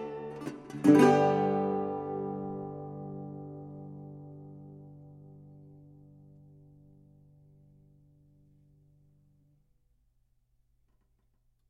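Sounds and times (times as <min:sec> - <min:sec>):
national anthem played on a 1928 National Steel Dobro: 0:00.0 - 0:07.9.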